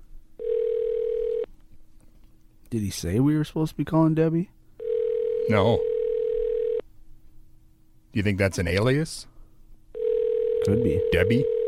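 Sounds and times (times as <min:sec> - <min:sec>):
telephone dial tone after dialing a number: 0:00.4 - 0:01.5, 0:04.8 - 0:06.8, 0:10.0 - 0:11.6
speech: 0:02.7 - 0:04.6, 0:05.5 - 0:05.9, 0:08.1 - 0:09.3, 0:10.6 - 0:11.6.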